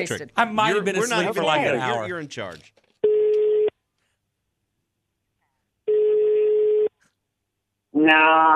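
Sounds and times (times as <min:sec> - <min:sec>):
speech: 0:00.0 - 0:02.8, 0:08.0 - 0:08.5
international telephone ring tone: 0:03.0 - 0:03.7, 0:05.9 - 0:06.9.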